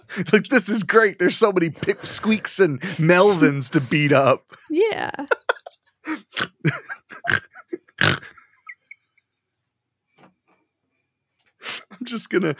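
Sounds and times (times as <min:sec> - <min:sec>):
speech: 0:00.2 - 0:08.3, 0:12.0 - 0:12.5
snorting and sniffing: 0:01.7 - 0:04.1.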